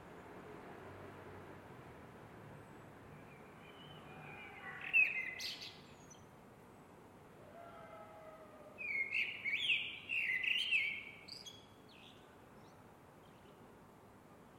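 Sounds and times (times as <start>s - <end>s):
Eurasian blackbird singing: 3.2s - 6.2s, 8.8s - 13.5s.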